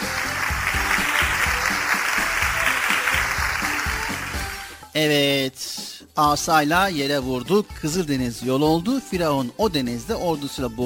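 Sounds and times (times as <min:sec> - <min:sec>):
crowd applause: 0:00.0 - 0:04.7
speech: 0:05.0 - 0:10.8.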